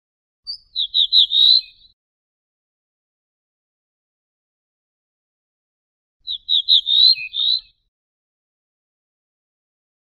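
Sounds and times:
ortolan bunting song: 0.5 - 2.0, 6.2 - 7.9.

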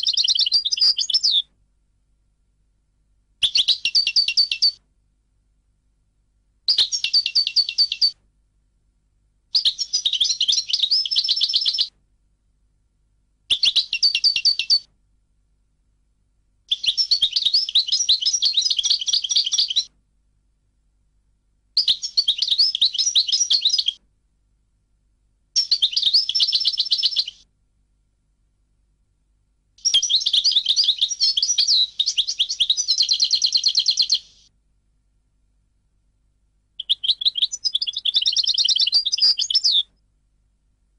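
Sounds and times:
European goldfinch song: 0.0 - 1.6, 3.4 - 4.8, 6.7 - 8.2, 9.5 - 12.0, 13.5 - 14.9, 16.7 - 19.9, 21.8 - 24.0, 25.5 - 27.5, 29.8 - 34.6, 36.8 - 40.0.

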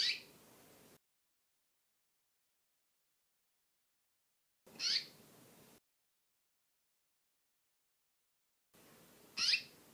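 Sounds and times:
female canary singing: 0.0 - 0.4, 4.7 - 5.2, 9.3 - 9.8.

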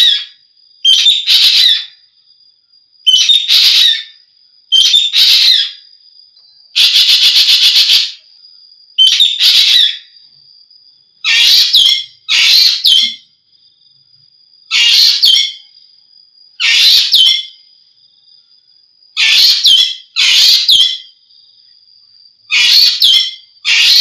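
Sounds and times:
Javan green magpie whistles and rasps: 0.9 - 2.0, 3.1 - 5.8, 6.8 - 8.2, 9.0 - 10.1, 11.3 - 13.2, 14.7 - 15.6, 16.6 - 17.6, 19.2 - 21.1, 22.5 - 23.9.

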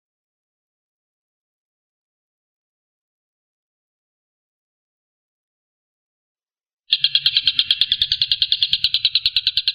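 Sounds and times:
Stork-billed kingfisher rattling: 6.9 - 9.7.

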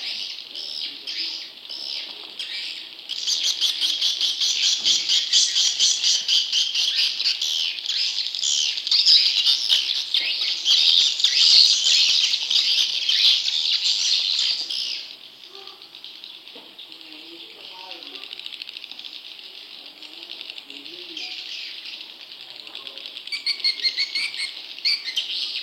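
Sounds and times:
swiftlet chirping: 0.0 - 25.6.

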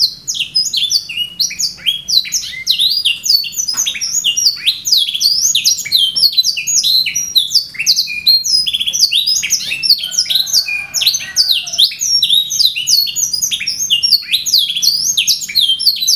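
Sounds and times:
canary singing: 0.0 - 16.1.

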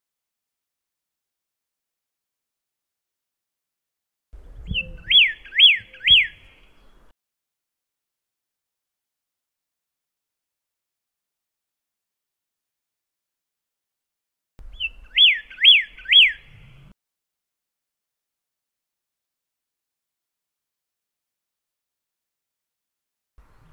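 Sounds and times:
pyrrhuloxia singing thin and slurred whistles: 4.4 - 7.0, 14.6 - 17.0, 23.4 - 23.7.

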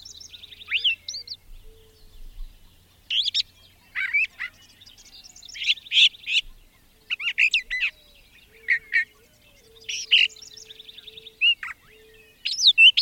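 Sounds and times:
brown thrasher singing: 0.0 - 13.0.

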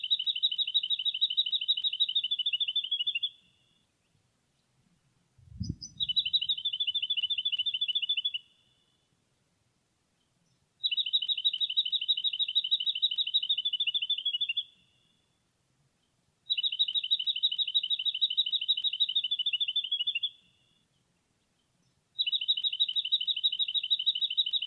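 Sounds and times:
jacky winter calling: 0.0 - 3.9, 5.5 - 9.0, 10.8 - 15.1, 16.5 - 20.6, 22.2 - 24.6.

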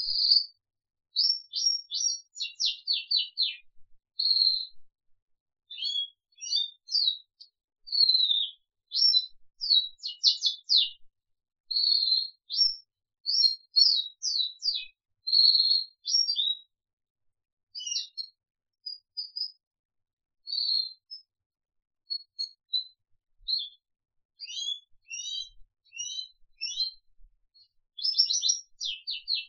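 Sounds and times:
crested canary singing: 0.0 - 0.6, 1.2 - 3.6, 4.2 - 4.7, 5.7 - 11.0, 11.8 - 16.7, 17.8 - 19.6, 20.5 - 21.2, 23.5 - 23.8, 24.4 - 27.0, 27.6 - 29.4.

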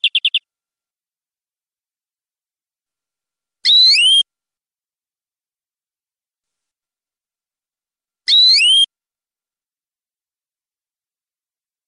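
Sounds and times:
canary singing long-duration rolling trill: 0.0 - 0.4, 3.6 - 4.2, 8.3 - 8.9.

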